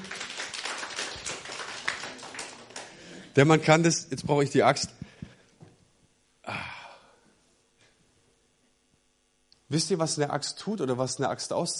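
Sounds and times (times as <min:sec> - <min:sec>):
hand clapping: 0:00.0 - 0:03.1
speech: 0:03.4 - 0:05.0, 0:09.8 - 0:11.7.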